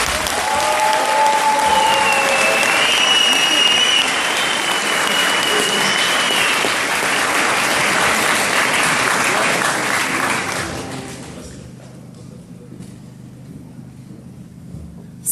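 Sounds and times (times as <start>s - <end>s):
audience applause: 0.0s - 11.6s.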